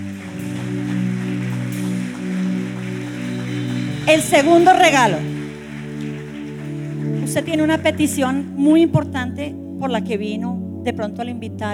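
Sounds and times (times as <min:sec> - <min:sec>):
church audience applause: 0:00.0 - 0:09.2
speech: 0:04.1 - 0:05.3, 0:07.4 - 0:11.7.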